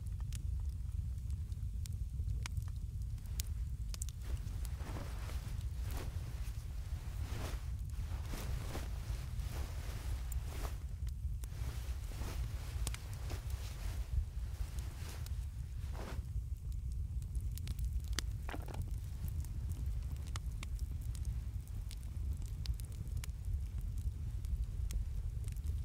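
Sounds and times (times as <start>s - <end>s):
wood cabin ambience: 0.1s - 25.8s.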